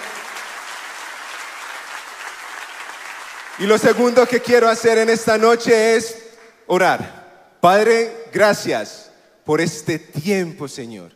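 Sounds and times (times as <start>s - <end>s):
audience applause: 0.0s - 4.1s
speech: 3.6s - 11.1s.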